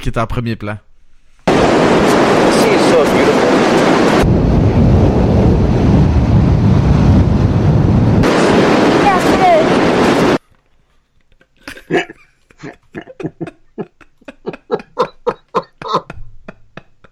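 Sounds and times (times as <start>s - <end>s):
sea waves rolling in surf: 1.5s - 10.4s
laughter: 11.4s - 17.1s.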